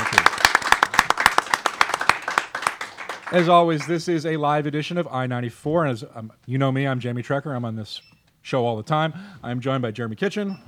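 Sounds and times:
small audience applauding an author at Pilsen Community Books: 0.0s - 4.0s
speech: 3.3s - 10.6s.

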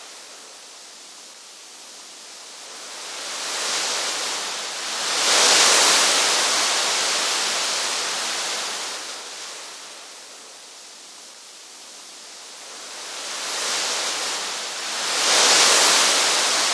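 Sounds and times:
waves: 2.6s - 10.5s, 12.5s - 16.7s.

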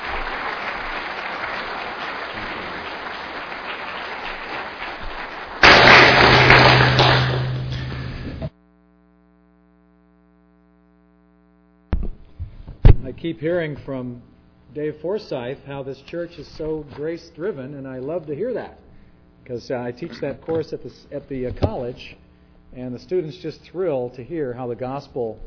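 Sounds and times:
church congregation applauding to welcome a guest preacher: 0.0s - 8.4s
speech: 13.2s - 18.8s, 19.5s - 25.4s.

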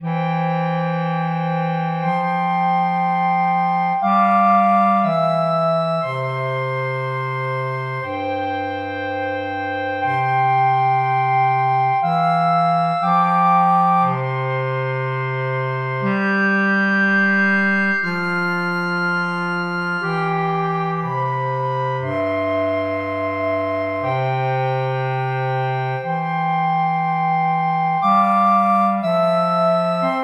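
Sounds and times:
woodwinds: 0.0s - 30.2s.

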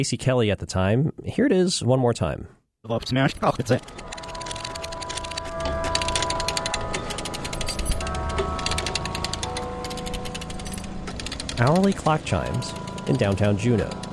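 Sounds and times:
speech: 0.0s - 4.1s, 11.6s - 14.0s
ratchet jack worked at the end of an old pier: 3.7s - 14.1s.

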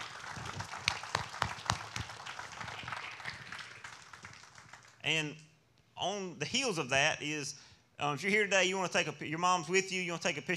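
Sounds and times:
audience clapping: 0.0s - 5.0s
speech: 5.0s - 5.4s, 6.0s - 10.5s.

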